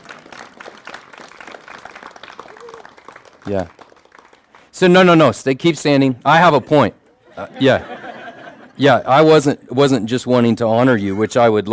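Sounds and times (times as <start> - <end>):
audience applause: 0.0 - 5.0
speech: 3.4 - 3.8, 4.8 - 7.9, 8.8 - 11.7
laughter: 6.3 - 9.3.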